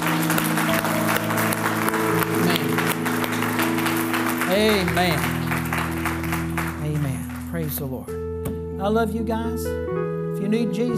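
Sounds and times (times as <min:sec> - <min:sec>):
audience clapping: 0:00.0 - 0:08.2
speech: 0:04.6 - 0:05.3, 0:07.8 - 0:08.2, 0:08.8 - 0:10.9.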